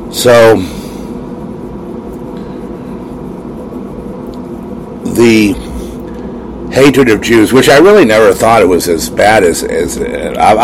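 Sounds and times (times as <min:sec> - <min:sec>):
air conditioner running: 0:00.0 - 0:10.6
speech: 0:00.1 - 0:00.8, 0:05.2 - 0:05.7, 0:06.7 - 0:10.6.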